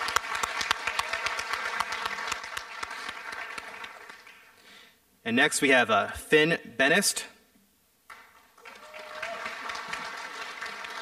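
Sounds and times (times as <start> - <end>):
audience applause: 0.0 - 4.6, 8.1 - 10.9
speech: 5.3 - 7.3.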